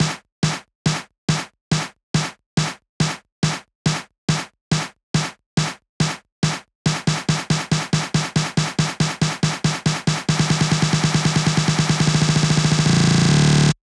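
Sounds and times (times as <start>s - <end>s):
snare drum pattern at 140 BPM: 0.0s - 13.0s.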